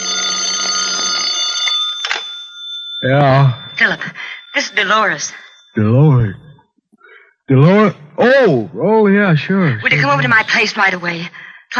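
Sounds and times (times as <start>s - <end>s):
telephone bell ringing: 0.0s - 5.8s
speech: 3.0s - 6.4s, 7.5s - 11.7s.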